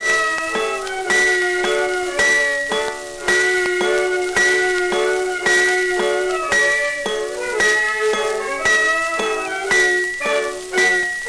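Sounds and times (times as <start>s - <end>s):
opera chorus on a jukebox: 0.0s - 11.1s.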